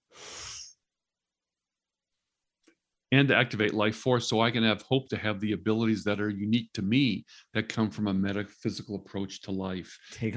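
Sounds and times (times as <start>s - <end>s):
person blowing out a breath during a guided breathing exercise: 0.0s - 0.8s
speech: 3.1s - 10.3s.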